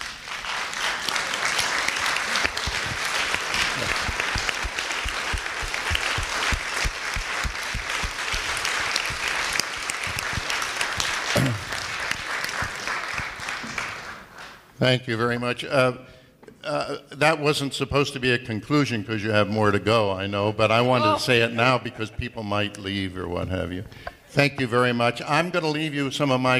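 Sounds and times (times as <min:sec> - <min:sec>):
standing audience applause: 0:00.0 - 0:14.6
speech: 0:14.8 - 0:26.5.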